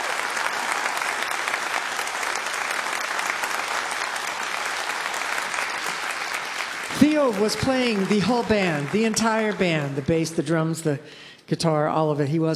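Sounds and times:
audience applause: 0.0s - 10.7s
speech: 7.1s - 12.5s.

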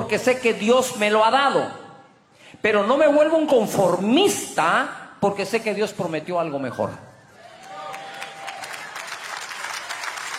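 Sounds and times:
speech: 0.1s - 1.8s, 2.6s - 7.1s
audience applause: 7.6s - 10.3s.

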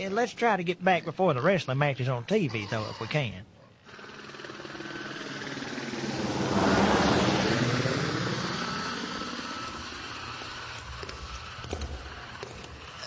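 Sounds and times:
speech: 0.0s - 3.5s
helicopter engine and rotor drone: 3.9s - 12.9s.

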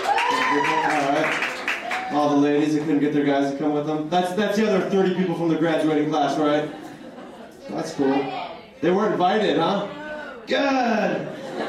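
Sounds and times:
whooping cheer: 0.0s - 2.4s
crowd applause: 0.0s - 3.0s
speech: 2.3s - 6.8s, 7.7s - 11.6s
laughter: 6.3s - 8.0s, 10.9s - 11.6s.

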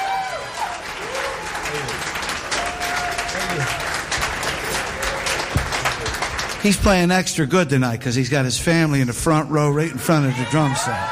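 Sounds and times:
audience applause for the drummer at a live concert: 0.0s - 7.2s
speech: 6.6s - 11.1s.

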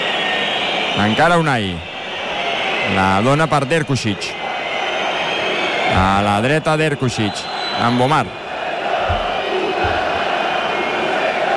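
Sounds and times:
large stadium crowd roaring and shouting: 0.0s - 11.5s
speech: 1.0s - 1.9s, 2.9s - 4.4s, 5.9s - 8.4s
low thumps: 9.0s - 10.5s.

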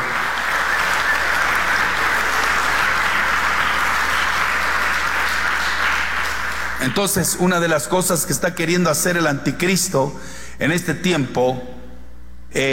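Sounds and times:
audience applause: 0.0s - 7.3s
speech: 6.9s - 11.8s, 12.5s - 12.7s.

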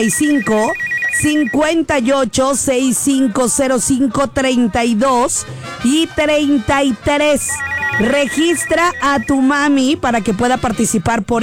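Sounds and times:
telephone ringing on radio station call-in lines: 0.0s - 1.7s, 7.4s - 9.8s
speech: 0.0s - 11.4s.

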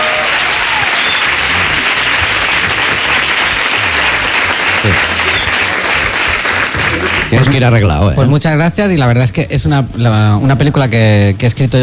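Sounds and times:
audience applause: 0.0s - 7.8s
speech: 7.3s - 11.8s.

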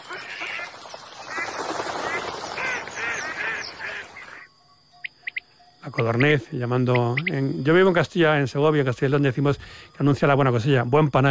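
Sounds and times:
ducks quacking on the wetland lagoons of La Mancha Húmeda: 0.0s - 4.5s
speech: 6.0s - 11.2s.

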